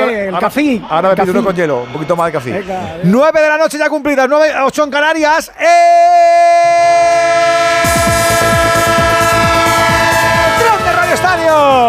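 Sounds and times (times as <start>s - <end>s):
speech: 0.1s - 6.8s, 11.2s - 11.8s
train horn-like whistle chord: 7.1s - 10.9s.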